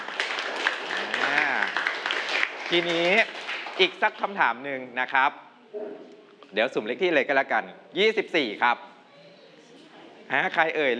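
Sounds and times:
students in a classroom clapping for a classmate: 0.0 - 4.2
speech: 2.7 - 8.9, 10.3 - 10.9.

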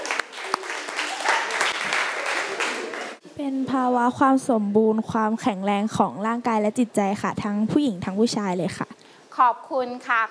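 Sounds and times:
classroom applause for a student: 0.0 - 3.2
speech: 3.4 - 10.2.

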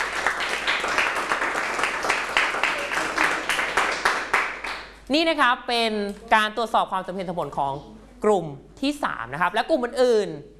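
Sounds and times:
classroom applause: 0.0 - 5.0
speech: 5.1 - 10.5.

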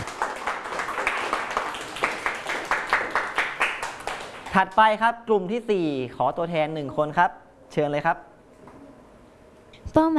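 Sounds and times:
classroom applause for a student: 0.0 - 4.8
speech: 4.6 - 8.3, 10.0 - 10.1.

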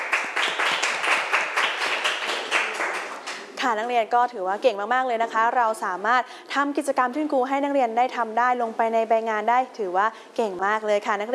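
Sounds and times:
students clapping for a classmate: 0.0 - 3.6
speech: 3.6 - 11.3.

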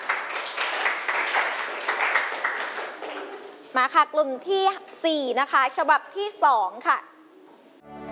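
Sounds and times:
classroom children clapping for classmates: 0.0 - 3.7
speech: 3.8 - 7.1.

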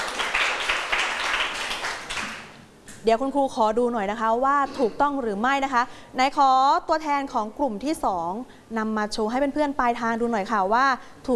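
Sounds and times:
students in a classroom clapping for themselves: 0.0 - 2.6
speech: 3.0 - 11.3.

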